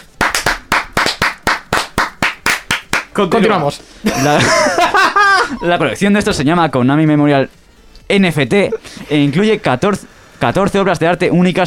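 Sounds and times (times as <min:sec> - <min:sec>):
hand clapping: 0:00.0 - 0:03.2
speech: 0:03.2 - 0:11.6
laughter: 0:04.0 - 0:06.0.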